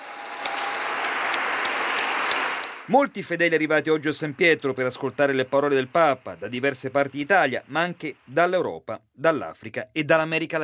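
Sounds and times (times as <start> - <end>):
crowd applause: 0.0 - 8.4
speech: 2.9 - 10.6.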